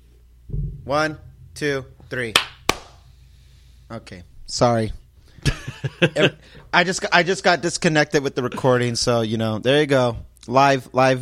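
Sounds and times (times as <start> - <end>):
speech: 0.9 - 2.5, 3.9 - 5.0, 5.9 - 11.2
hand claps: 2.3 - 3.0
laughter: 5.4 - 6.6.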